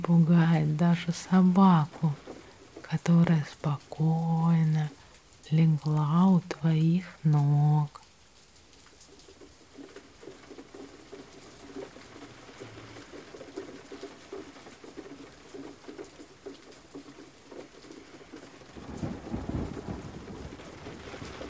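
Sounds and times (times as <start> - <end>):
speech: 0.0 - 2.2, 2.9 - 8.0
steady rain: 0.0 - 21.4
low rumbling of thunder: 18.6 - 21.4.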